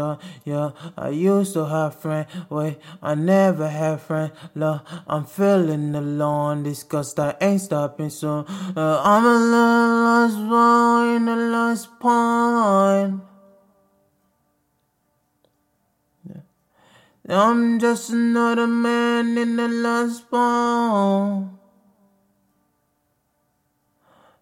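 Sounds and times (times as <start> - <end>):
lofi a cappella vocals at 116 BPM in B: 0.0 - 13.8, 16.2 - 16.5, 17.2 - 22.2.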